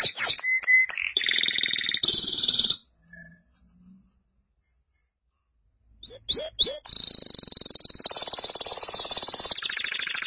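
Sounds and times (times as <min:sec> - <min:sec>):
canary singing: 0:00.0 - 0:03.3, 0:06.0 - 0:10.2.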